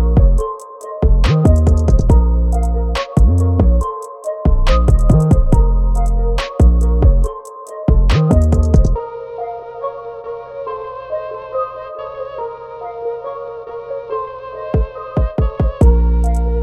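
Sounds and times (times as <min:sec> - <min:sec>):
instrumental beat: 0:00.0 - 0:09.0, 0:14.8 - 0:16.6.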